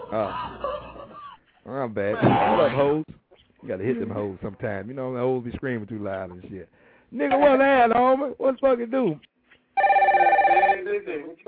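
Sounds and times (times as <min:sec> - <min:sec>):
laughter: 0:00.0 - 0:01.5
speech: 0:00.1 - 0:00.6, 0:01.8 - 0:09.3, 0:10.9 - 0:11.4
telephone ringing: 0:09.8 - 0:11.0.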